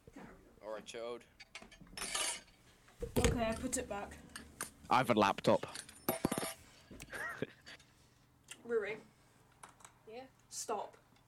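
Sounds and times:
speech: 0:00.8 - 0:01.5, 0:03.0 - 0:04.3, 0:04.9 - 0:05.8, 0:08.7 - 0:09.1, 0:10.2 - 0:11.0
cutlery clinking: 0:01.4 - 0:02.6, 0:05.6 - 0:06.6.

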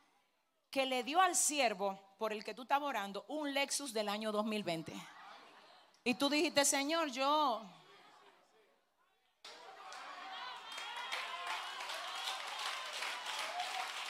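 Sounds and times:
speech: 0:00.7 - 0:05.2, 0:06.0 - 0:07.8
audience applauding: 0:09.5 - 0:14.0.

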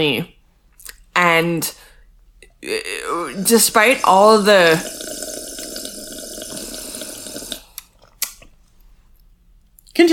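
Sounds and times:
speech: 0:00.0 - 0:00.4, 0:01.2 - 0:01.8, 0:02.6 - 0:05.3
person sipping juice: 0:02.4 - 0:08.3.

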